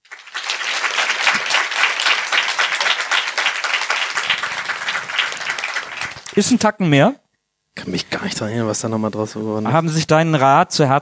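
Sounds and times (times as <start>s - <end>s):
crowd clapping: 0.0s - 6.6s
speech: 6.4s - 7.2s, 7.9s - 11.0s.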